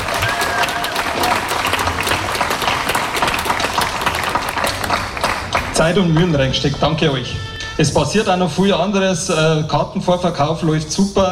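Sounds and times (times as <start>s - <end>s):
applause: 0.0s - 6.3s
speech: 5.8s - 11.3s.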